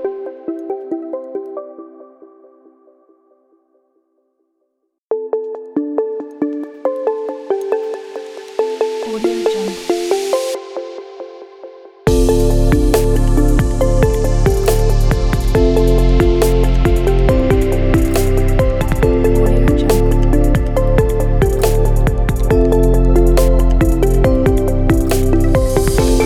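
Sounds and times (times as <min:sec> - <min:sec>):
futuristic trap tech music: 0:05.7 - 0:26.2.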